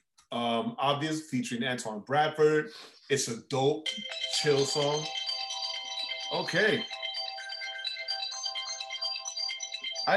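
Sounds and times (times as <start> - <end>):
speech: 0.3 - 5.2, 6.3 - 7.0
timer alarm electronic ringtone: 3.8 - 10.1.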